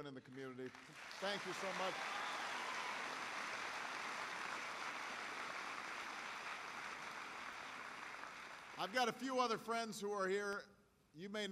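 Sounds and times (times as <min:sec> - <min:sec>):
speech: 0:00.0 - 0:02.2, 0:08.8 - 0:11.4
audience applause: 0:00.6 - 0:09.2.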